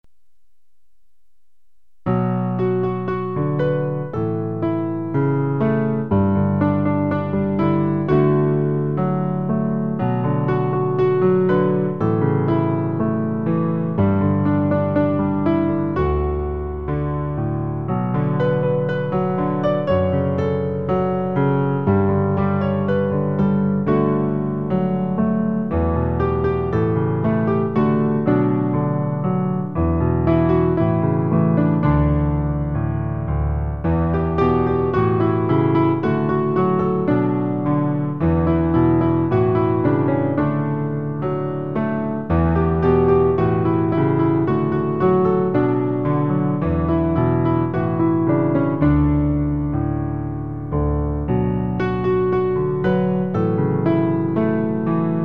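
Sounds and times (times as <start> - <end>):
piano: 0.0 - 55.2.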